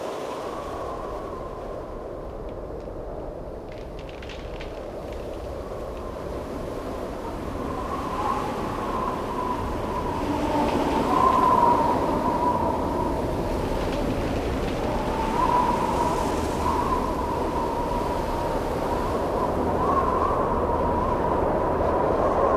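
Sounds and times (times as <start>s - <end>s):
outdoor woods ambience: 0.0s - 22.4s.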